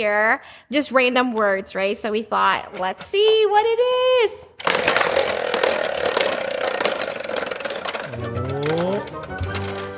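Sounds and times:
speech: 0.0 - 5.5
mystery prize wheel spinning with ticks and whir: 4.6 - 9.9.

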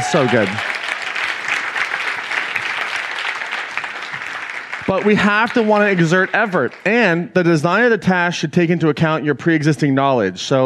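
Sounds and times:
audience round of applause: 0.0 - 7.3
speech: 0.1 - 0.7, 4.9 - 10.6.

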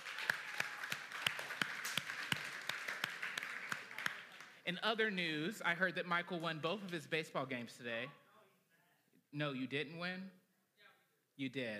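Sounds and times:
audience applause: 0.0 - 4.6
speech: 4.7 - 8.2, 9.3 - 10.4, 11.4 - 11.7.

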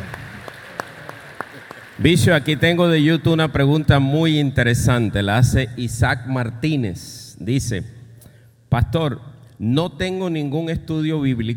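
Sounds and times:
scattered handclaps: 0.0 - 2.6
speech: 2.0 - 8.0, 8.7 - 11.5.

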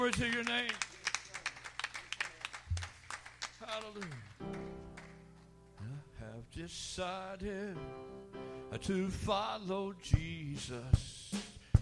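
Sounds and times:
group clapping in a steady rhythm: 0.0 - 5.3
speech: 0.1 - 0.9, 3.8 - 4.6, 6.4 - 11.5.

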